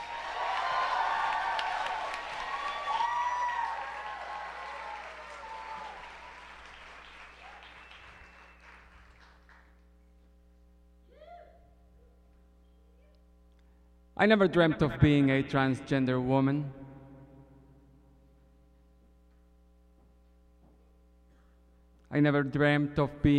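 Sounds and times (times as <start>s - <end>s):
cheers: 0.0s - 9.3s
audience applause: 0.0s - 9.8s
speech: 14.2s - 16.8s, 22.2s - 23.3s.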